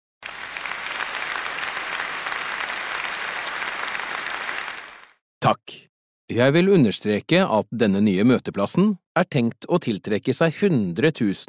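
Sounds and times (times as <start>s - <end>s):
large audience applause: 0.2s - 5.2s
speech: 5.5s - 11.4s.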